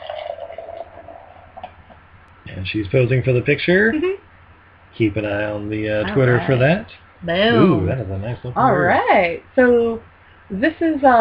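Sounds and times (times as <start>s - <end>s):
beer poured from a large 32-ounce can: 0.0s - 1.9s
speech: 2.4s - 4.2s, 5.0s - 11.1s.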